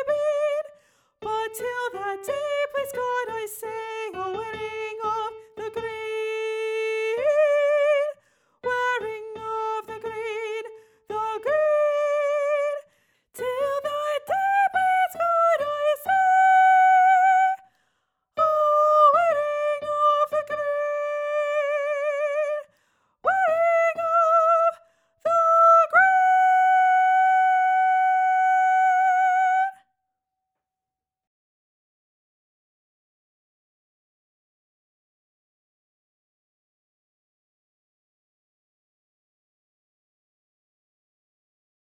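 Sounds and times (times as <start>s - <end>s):
soprano: 0.0s - 12.8s, 13.4s - 17.6s, 18.4s - 22.6s, 23.3s - 29.8s.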